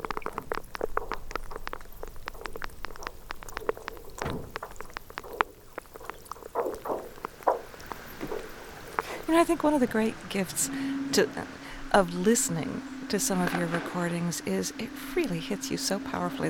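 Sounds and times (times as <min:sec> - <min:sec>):
brash ice percolating with clicks and pops: 0:00.0 - 0:09.8
low ice groaning: 0:08.2 - 0:16.4
speech: 0:09.3 - 0:16.4.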